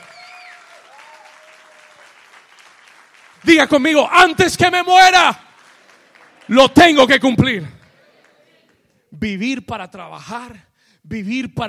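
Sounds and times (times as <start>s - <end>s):
faint whistles and cheers: 0.0s - 2.4s
audience applause: 0.0s - 8.8s
speech: 3.4s - 5.4s, 6.5s - 7.8s, 9.2s - 11.6s.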